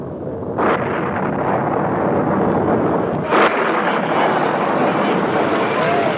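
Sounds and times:
thunder rumbling in a storm: 0:00.0 - 0:06.1.

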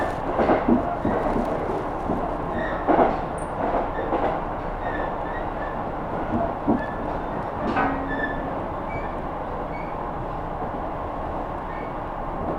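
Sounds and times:
Kyudai Main Line train rumbling from Hita toward Tanushimaru: 0:00.0 - 0:11.5.

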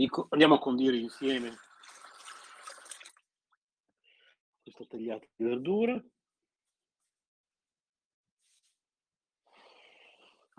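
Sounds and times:
speech: 0:00.0 - 0:01.7, 0:04.7 - 0:06.2
running tap water while someone washes their hands: 0:00.8 - 0:03.2
water drips: 0:01.1 - 0:03.3.

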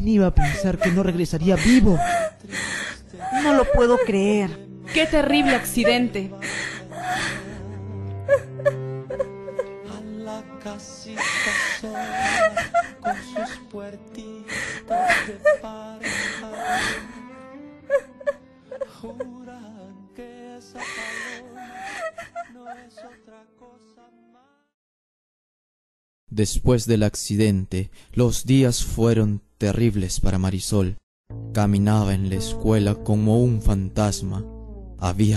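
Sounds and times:
speech: 0:00.0 - 0:06.6, 0:10.7 - 0:17.2, 0:19.0 - 0:24.3, 0:26.3 - 0:35.3
woman crying and wailing in a Spanish-language radio drama: 0:00.2 - 0:09.8, 0:11.2 - 0:13.6, 0:14.5 - 0:17.2, 0:17.9 - 0:19.4, 0:20.8 - 0:23.2.

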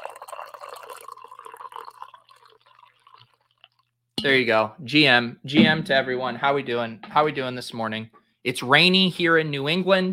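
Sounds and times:
coffee being poured: 0:00.0 - 0:03.9
speech: 0:04.2 - 0:10.1.

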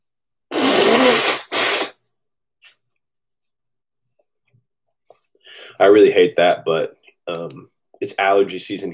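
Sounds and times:
person blowing nose: 0:00.5 - 0:02.0
speech: 0:05.8 - 0:08.9.

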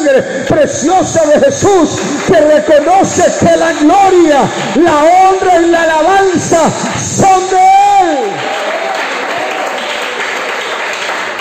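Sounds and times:
speech: 0:00.0 - 0:08.3
audience applause: 0:01.8 - 0:05.7, 0:08.2 - 0:11.3.

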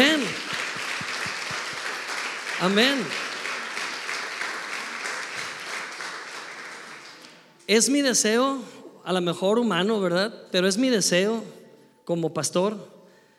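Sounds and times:
audience applause: 0:00.0 - 0:07.5
speech: 0:02.6 - 0:03.3, 0:07.7 - 0:13.0.

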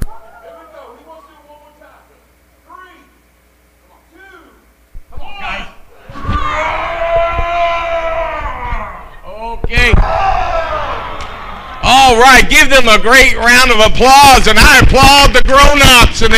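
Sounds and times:
children roaring like lions: 0:05.3 - 0:09.2, 0:10.0 - 0:11.8
speech: 0:12.2 - 0:16.3.

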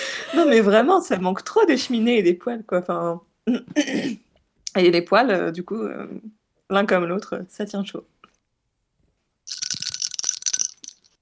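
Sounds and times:
speech: 0:00.3 - 0:04.2, 0:04.8 - 0:08.2
small bell shaken rapidly: 0:09.5 - 0:11.2.

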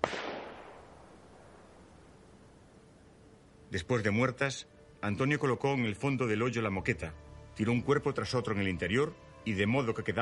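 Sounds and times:
pistol gunshots: 0:00.0 - 0:01.5
speech: 0:03.7 - 0:10.2.

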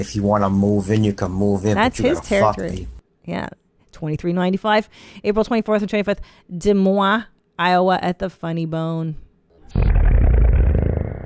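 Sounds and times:
speech: 0:00.0 - 0:09.8
slow-motion fart: 0:09.6 - 0:11.2.

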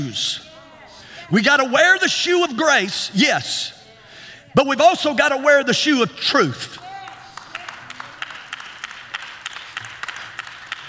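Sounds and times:
speech: 0:00.0 - 0:00.5, 0:01.3 - 0:03.8, 0:04.5 - 0:06.8
hand claps: 0:06.8 - 0:10.8.

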